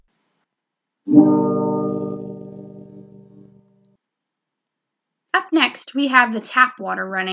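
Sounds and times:
guitar being played: 0:01.1 - 0:03.8
speech: 0:05.8 - 0:07.3.

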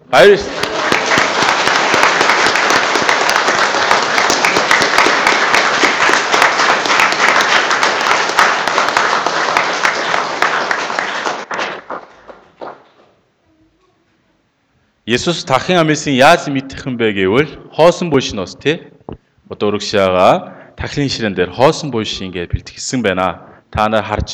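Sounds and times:
congregation applause celebrating Easter: 0:00.0 - 0:13.2
speech: 0:00.1 - 0:00.7, 0:15.1 - 0:19.0, 0:19.6 - 0:24.3.

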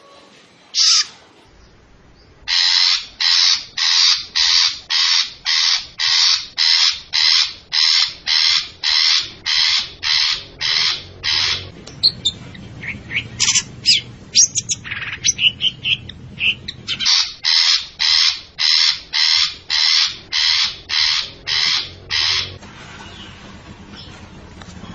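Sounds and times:
long-tailed shrike singing scratchy chattering notes: 0:00.8 - 0:24.9.

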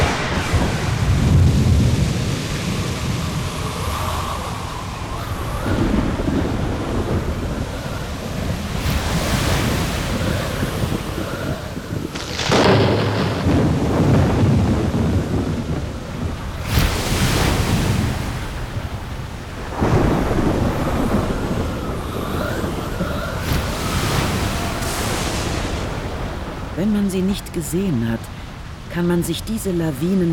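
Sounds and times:
sudden bright thunderclaps and rumbles: 0:00.0 - 0:27.0
crashing surf: 0:00.0 - 0:30.3
dense rain in a heavy storm: 0:00.0 - 0:30.3
gusty wind buffeting: 0:00.0 - 0:30.3
speech: 0:26.9 - 0:28.3, 0:29.0 - 0:30.3.

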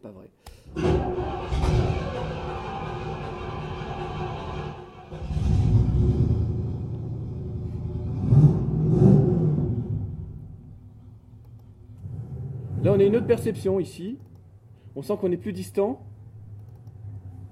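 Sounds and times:
speech: 0:00.0 - 0:01.2, 0:13.0 - 0:14.3, 0:15.0 - 0:16.1
American car engine rumbling: 0:00.6 - 0:14.0.

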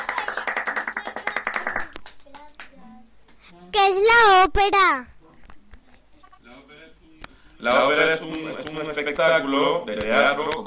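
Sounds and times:
audience applause: 0:00.0 - 0:01.9
speech: 0:03.8 - 0:05.1, 0:07.6 - 0:10.6.

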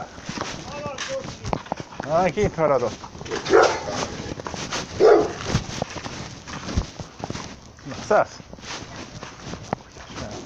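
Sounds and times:
rustling: 0:00.0 - 0:10.4
speech: 0:02.1 - 0:03.1, 0:08.1 - 0:08.4
dog barking: 0:03.3 - 0:04.0, 0:05.0 - 0:05.5.

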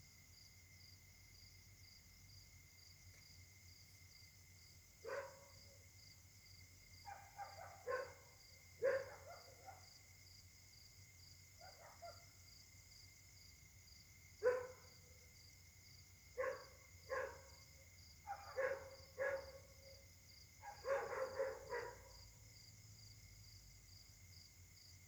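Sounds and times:
steady high-pitched insect chorus: 0:00.0 - 0:25.0
dog barking: 0:05.0 - 0:05.8, 0:07.0 - 0:09.9, 0:11.6 - 0:12.4, 0:14.4 - 0:15.0, 0:16.4 - 0:17.6, 0:18.2 - 0:20.0, 0:20.6 - 0:22.3.

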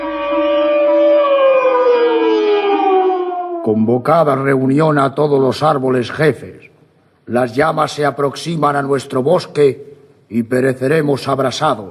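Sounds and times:
alarm siren wailing: 0:00.0 - 0:04.0
speech: 0:03.6 - 0:06.7, 0:07.3 - 0:11.8.

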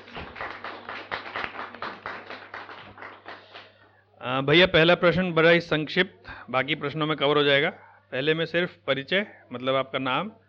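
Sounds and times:
crowd clapping: 0:00.0 - 0:03.9
speech: 0:04.2 - 0:10.4.

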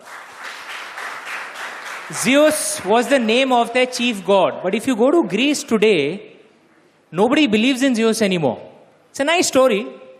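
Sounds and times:
group applause: 0:00.0 - 0:03.3
speech: 0:02.1 - 0:06.3, 0:07.1 - 0:10.0.

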